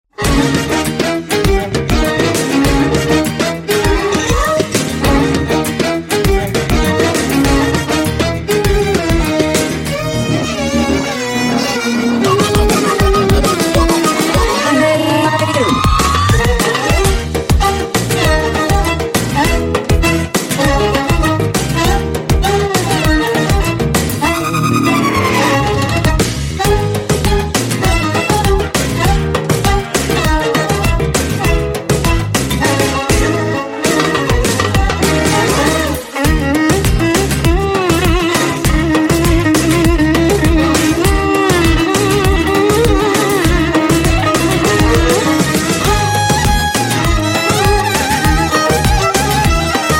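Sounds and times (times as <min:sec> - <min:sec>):
violin: 0:00.1 - 0:49.9.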